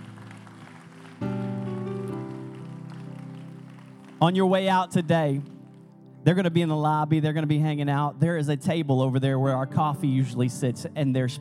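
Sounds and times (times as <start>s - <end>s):
audience clapping: 0.0s - 6.0s
speech: 4.2s - 5.5s, 6.2s - 11.4s.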